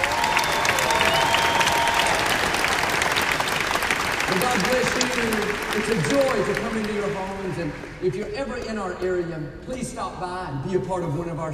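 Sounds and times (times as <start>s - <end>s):
faint whistles and cheers: 0.0s - 3.0s
large crowd applause: 0.0s - 8.0s
speech: 4.5s - 11.5s.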